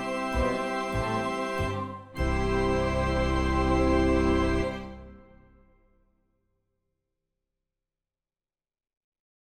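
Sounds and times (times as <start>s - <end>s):
full fanfare: 0.0s - 5.7s.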